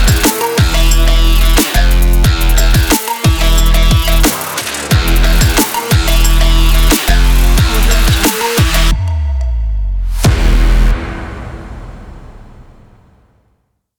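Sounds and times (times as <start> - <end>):
trap workout beat: 0.0 - 10.8.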